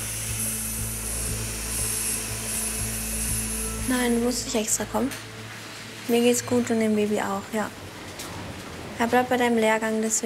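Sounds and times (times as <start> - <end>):
motorized whir: 0.0 - 5.3
speech: 3.9 - 5.3, 6.1 - 7.8, 9.0 - 10.2.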